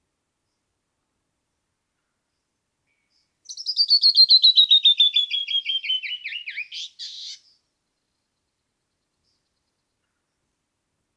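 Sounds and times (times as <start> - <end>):
Canyon wren song: 3.4 - 7.6.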